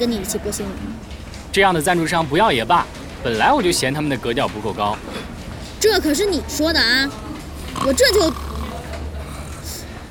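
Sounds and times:
speech: 0:00.0 - 0:07.2, 0:07.8 - 0:08.5
snoring that sounds like pig grunts: 0:07.6 - 0:09.8.

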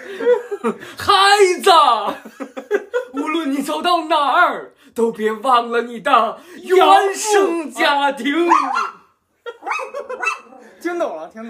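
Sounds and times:
laughter: 0:00.0 - 0:00.9, 0:02.0 - 0:03.4, 0:09.4 - 0:10.8
speech: 0:00.2 - 0:09.0, 0:09.6 - 0:11.4
dog barking: 0:08.5 - 0:10.7.

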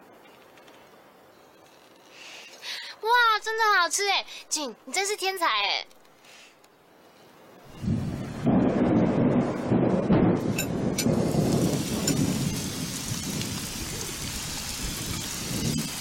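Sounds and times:
speech: 0:03.0 - 0:06.0
rain: 0:07.6 - 0:15.9
thunder: 0:07.7 - 0:15.9.

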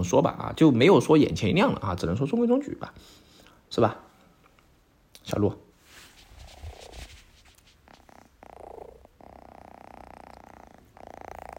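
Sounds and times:
speech: 0:00.0 - 0:04.1, 0:05.2 - 0:05.6
cat purring: 0:06.2 - 0:11.5.

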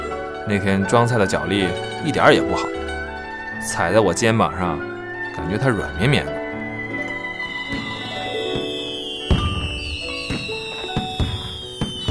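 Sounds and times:
speech: 0:00.5 - 0:02.8, 0:03.6 - 0:06.4
fireworks bursting: 0:06.4 - 0:12.0.

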